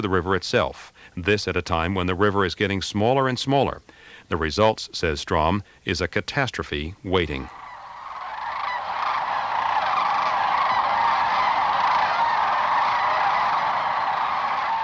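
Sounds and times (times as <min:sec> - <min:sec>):
speech: 0:00.0 - 0:07.6
huge flock of cranes calling: 0:07.4 - 0:14.8.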